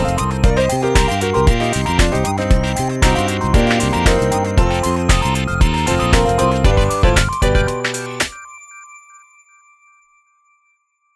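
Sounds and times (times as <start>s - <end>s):
background music: 0.0s - 8.4s.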